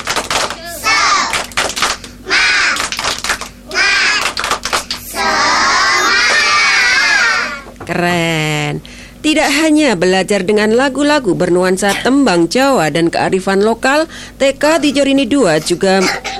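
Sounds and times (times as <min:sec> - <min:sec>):
children doing a rhythmic clapping chant: 0:00.0 - 0:07.6
speech: 0:07.9 - 0:16.3.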